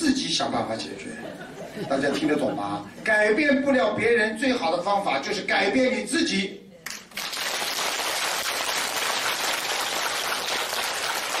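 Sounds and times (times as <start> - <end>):
speech: 0.2 - 6.6
laughter: 1.0 - 3.0
audience applause: 7.1 - 11.3.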